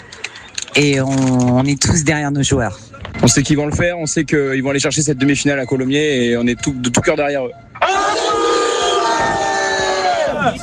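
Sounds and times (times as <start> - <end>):
speech: 0.8 - 7.8
rugby supporters cheering and chanting: 7.8 - 10.6.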